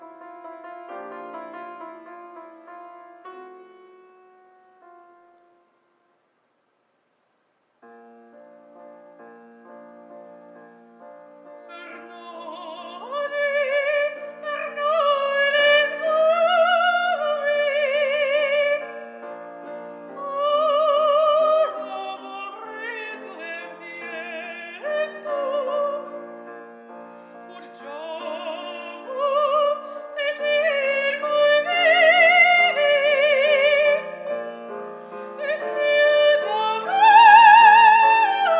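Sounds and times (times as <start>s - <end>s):
woman singing coloratura opera aria: 11.7s - 19.0s, 20.1s - 26.4s, 27.4s - 38.5s.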